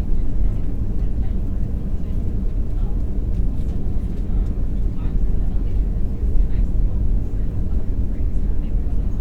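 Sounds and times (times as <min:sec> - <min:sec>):
airplane interior: 0:00.0 - 0:09.1.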